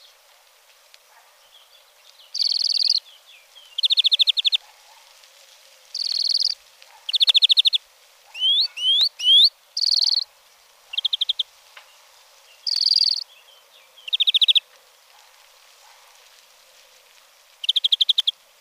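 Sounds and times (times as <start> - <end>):
European greenfinch giving buzzy trills: 2.2 - 4.6, 5.9 - 10.3, 10.9 - 14.6, 17.6 - 18.4.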